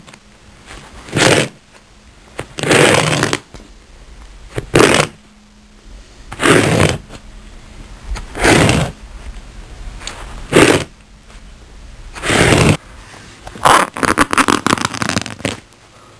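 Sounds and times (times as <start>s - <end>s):
ripping: 0.7s - 1.6s, 2.4s - 3.6s, 4.5s - 5.2s, 6.3s - 7.2s, 8.1s - 9.0s, 10.0s - 11.0s, 12.1s - 12.8s, 13.5s - 15.7s.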